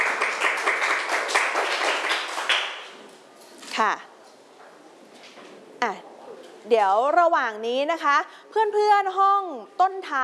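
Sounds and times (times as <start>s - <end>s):
classroom group clapping: 0.0s - 3.1s
speech: 3.8s - 4.1s, 6.7s - 10.2s.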